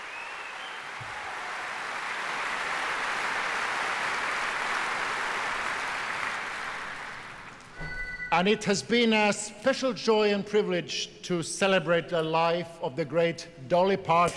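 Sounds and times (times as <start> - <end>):
audience applause for musicians at a tribute concert: 0.0 - 7.7
speech: 8.3 - 14.3.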